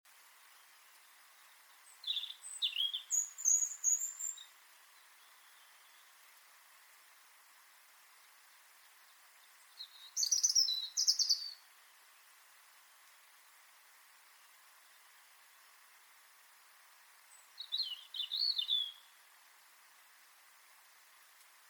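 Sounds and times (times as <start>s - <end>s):
soft background hiss: 0.1s - 21.6s
European robin singing: 0.5s - 6.2s, 8.1s - 12.3s, 17.2s - 19.2s.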